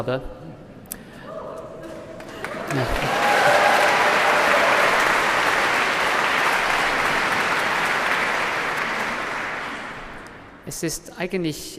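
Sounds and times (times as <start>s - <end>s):
speech: 0.0s - 0.4s, 2.7s - 3.2s, 10.7s - 11.7s
large audience clapping for an encore: 2.2s - 10.5s.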